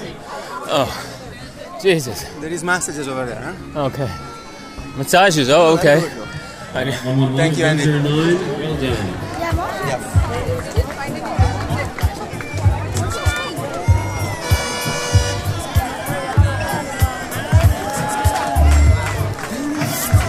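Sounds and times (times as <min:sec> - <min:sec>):
speech: 0:00.7 - 0:01.1, 0:01.8 - 0:04.3, 0:05.0 - 0:09.3
crowd clapping and cheering: 0:08.8 - 0:20.2.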